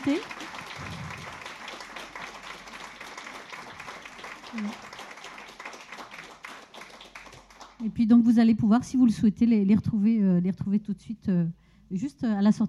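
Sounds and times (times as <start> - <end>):
speech: 0.0 - 0.4, 4.6 - 4.8, 7.8 - 12.6
audience applause: 0.0 - 7.8.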